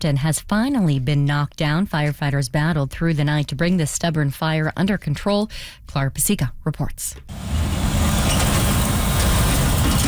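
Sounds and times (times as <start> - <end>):
speech: 0.0 - 7.6
trucks thundering along Intermodal Drive past Triple M Metal: 7.3 - 10.0.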